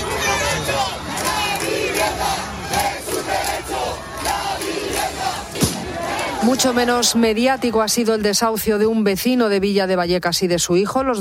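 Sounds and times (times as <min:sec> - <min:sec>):
demonstration crowd shouting and chanting support: 0:00.0 - 0:09.1
speech: 0:06.4 - 0:11.1.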